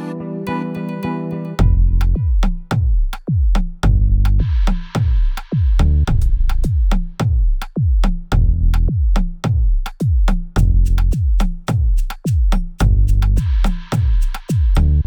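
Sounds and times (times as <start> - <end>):
instrumental pop beat with keys: 0.6 - 14.9.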